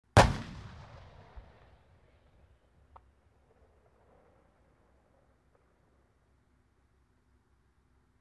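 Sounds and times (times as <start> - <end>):
tank cannon firing: 0.1 - 1.7.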